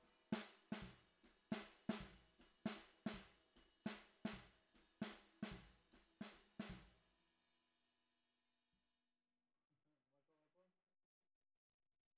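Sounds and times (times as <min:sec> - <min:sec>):
bottom snare drum: 0:00.0 - 0:07.0.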